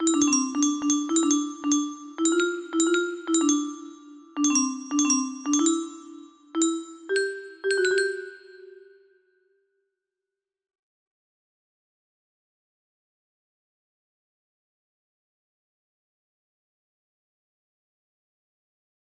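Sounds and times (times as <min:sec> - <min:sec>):
music box: 0:00.0 - 0:09.2.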